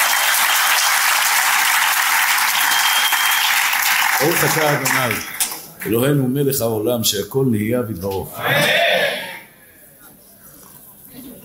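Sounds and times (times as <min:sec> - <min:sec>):
audience applause: 0:00.0 - 0:05.9
speech: 0:04.2 - 0:08.9.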